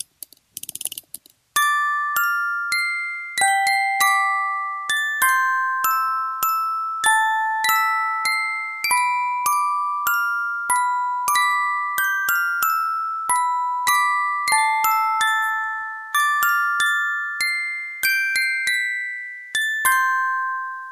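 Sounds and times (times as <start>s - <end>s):
music box: 1.5s - 20.9s.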